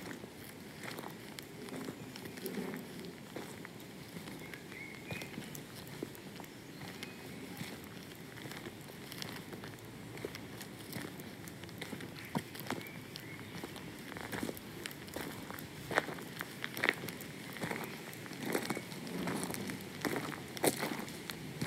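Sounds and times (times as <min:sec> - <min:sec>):
walking soundscape: 0:00.0 - 0:21.6.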